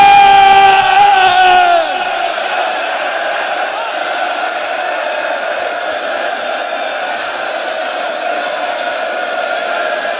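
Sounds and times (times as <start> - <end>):
crowd shouting in unison: 0.0 - 10.1.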